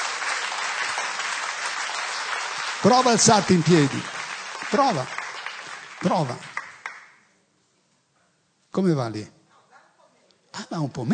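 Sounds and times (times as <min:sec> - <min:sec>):
church congregation applauding for the Lord: 0:00.0 - 0:07.2
speech: 0:02.8 - 0:04.1, 0:04.7 - 0:05.2, 0:06.0 - 0:06.5, 0:08.8 - 0:09.4, 0:10.6 - 0:11.1.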